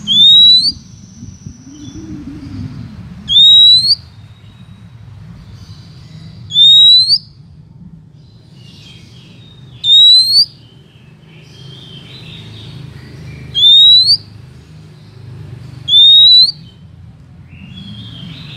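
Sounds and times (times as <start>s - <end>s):
Oriental magpie-robin rising whistle: 0.0s - 2.6s, 3.3s - 4.0s, 6.5s - 7.3s, 9.8s - 10.6s, 13.5s - 14.3s, 15.9s - 16.7s.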